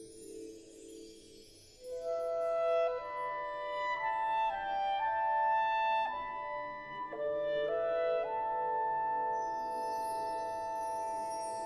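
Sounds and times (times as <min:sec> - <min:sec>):
wind ensemble playing a fantasy: 0:01.9 - 0:11.6.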